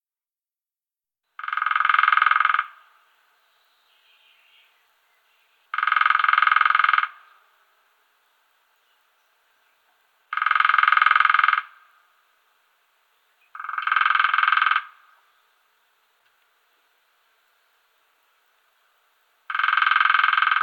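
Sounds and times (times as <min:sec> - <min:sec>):
lesser spotted woodpecker drumming: 0:01.4 - 0:03.0, 0:05.7 - 0:07.5, 0:09.9 - 0:12.1, 0:13.5 - 0:15.3, 0:19.4 - 0:20.6.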